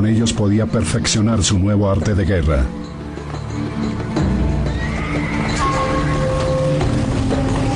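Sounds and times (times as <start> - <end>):
speech: 0.0 - 3.0
horse neighing and whinnying: 4.3 - 7.6.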